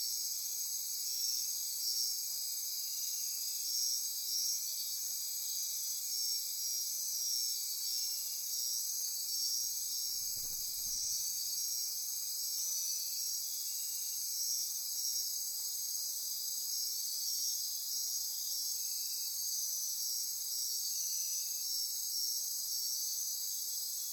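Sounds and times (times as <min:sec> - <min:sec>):
insect chorus: 0:00.0 - 0:24.1
low rustle: 0:10.2 - 0:11.2.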